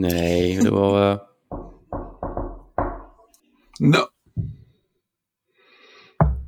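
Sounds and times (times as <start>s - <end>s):
speech: 0.0s - 1.3s, 3.8s - 4.1s
knock on a door in a video game: 1.5s - 3.2s.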